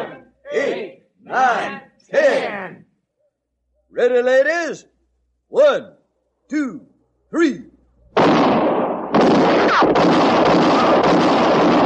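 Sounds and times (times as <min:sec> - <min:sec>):
speech: 0:01.3 - 0:02.6, 0:04.0 - 0:04.9, 0:05.5 - 0:07.7
gunshots in an audio drama: 0:08.2 - 0:11.8.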